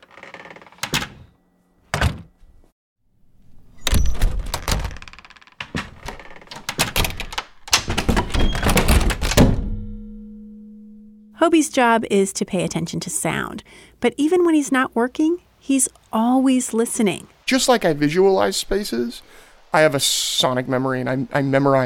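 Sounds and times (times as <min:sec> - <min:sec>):
different doors shutting: 0:00.0 - 0:02.6, 0:03.6 - 0:10.0
low hum: 0:09.5 - 0:11.7
speech: 0:11.4 - 0:21.8.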